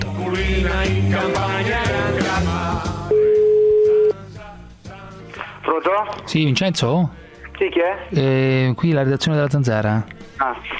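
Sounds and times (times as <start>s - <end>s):
layered music: 0.0s - 10.7s
speech: 0.3s - 3.3s, 5.9s - 10.7s
telephone dial tone while calling back: 3.1s - 4.1s.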